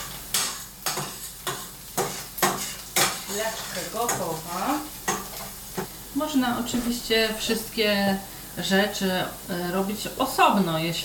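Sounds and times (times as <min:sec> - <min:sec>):
onion stirred in a frying pan: 0:00.0 - 0:08.6
soft sizzle: 0:00.0 - 0:11.0
speech: 0:03.3 - 0:04.9, 0:06.2 - 0:11.0.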